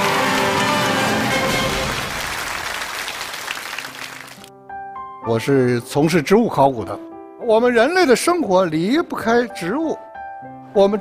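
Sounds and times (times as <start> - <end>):
audience applause: 0.0 - 4.5
speech: 5.3 - 10.1, 10.8 - 11.0.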